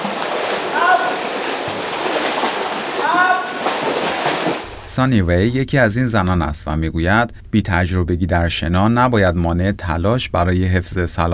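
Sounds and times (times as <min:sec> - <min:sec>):
water splashing in a swimming pool during a beginner swimming class: 0:00.0 - 0:04.9
speech: 0:05.0 - 0:11.3.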